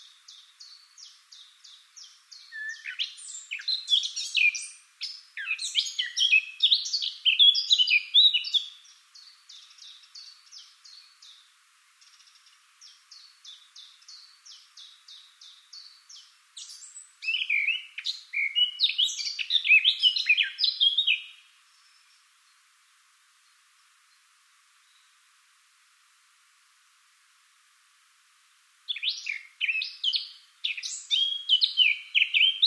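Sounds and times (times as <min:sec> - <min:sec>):
Eurasian blackcap singing a warble: 0:00.0 - 0:22.3, 0:28.9 - 0:32.6.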